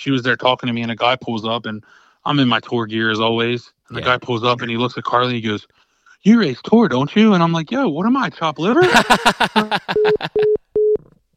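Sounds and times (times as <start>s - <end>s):
speech: 0.0s - 10.6s
laughter: 8.8s - 10.5s
phone busy signal after dropped call: 10.0s - 11.0s.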